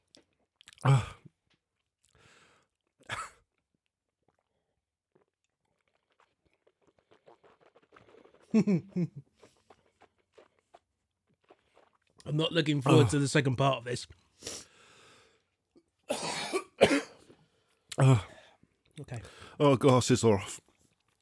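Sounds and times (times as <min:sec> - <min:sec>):
person chewing food: 0:00.0 - 0:12.3, 0:20.6 - 0:21.2
speech: 0:00.8 - 0:01.1, 0:08.5 - 0:09.3, 0:12.4 - 0:14.6, 0:18.0 - 0:18.3, 0:19.6 - 0:20.7.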